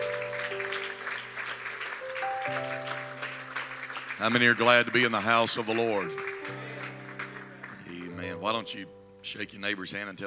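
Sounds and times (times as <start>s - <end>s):
audience hand clapping: 0.0s - 8.2s
speech: 4.2s - 6.6s, 8.4s - 10.2s.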